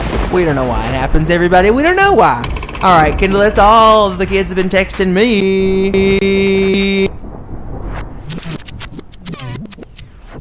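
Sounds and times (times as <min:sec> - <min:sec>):
speech: 0:00.3 - 0:07.2
alarm going off: 0:05.6 - 0:07.2.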